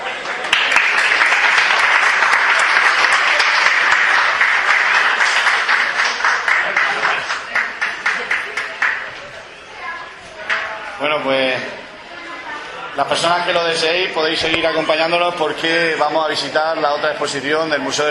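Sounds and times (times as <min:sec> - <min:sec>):
loud audience applause: 0:00.0 - 0:09.6
speech: 0:13.0 - 0:18.0.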